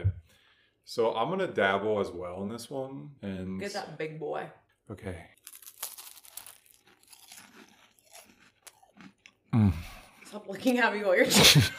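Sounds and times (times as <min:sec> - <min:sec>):
speech: 0:00.9 - 0:05.4, 0:09.5 - 0:11.7
crunchy biting and chewing of a cheesy, pizza-flavoured snack: 0:05.4 - 0:10.2.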